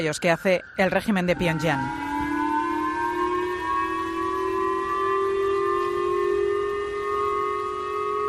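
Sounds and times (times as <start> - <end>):
speech: 0.0 - 2.1
Japanese civil defense missile alert siren: 0.0 - 8.2.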